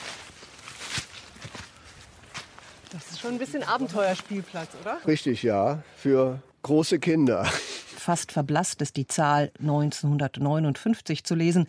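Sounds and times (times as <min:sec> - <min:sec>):
footsteps walking up a damp embankment: 0:00.0 - 0:05.0
speech: 0:03.0 - 0:11.6.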